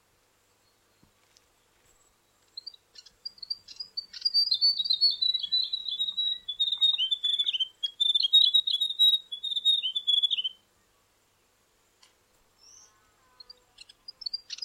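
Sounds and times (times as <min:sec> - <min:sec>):
grey warbler singing a high quavering trill: 0:02.6 - 0:10.6, 0:12.6 - 0:14.6.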